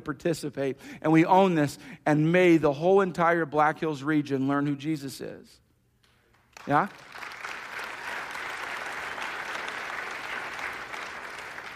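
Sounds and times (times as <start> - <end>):
speech: 0.0 - 5.6, 6.6 - 7.4
crowd applauding: 6.5 - 11.7.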